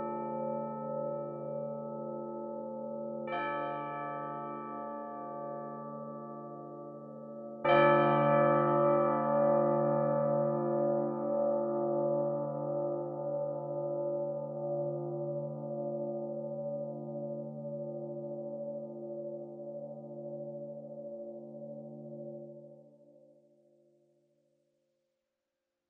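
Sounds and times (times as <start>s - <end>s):
bells in 17-tone equal temperament: 0.0s - 22.8s.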